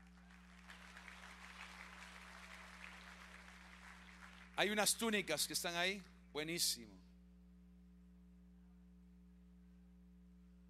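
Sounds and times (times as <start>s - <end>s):
audience applause: 0.0s - 5.1s
speech: 4.6s - 7.0s.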